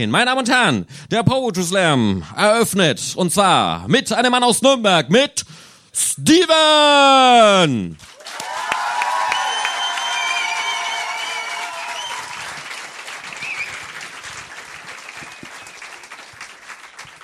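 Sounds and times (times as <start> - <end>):
speech: 0.0 - 8.1
audience applause: 8.0 - 17.2.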